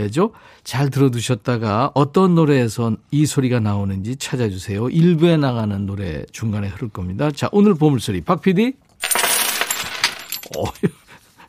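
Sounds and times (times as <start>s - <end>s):
speech: 0.0s - 8.9s, 10.5s - 11.0s
lots of coins dropping: 9.0s - 10.8s.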